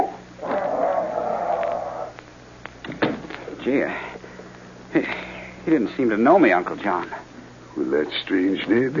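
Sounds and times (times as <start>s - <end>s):
dog Buster growling in a radio drama: 0.0s - 2.2s
speech: 3.7s - 4.1s, 4.9s - 8.9s.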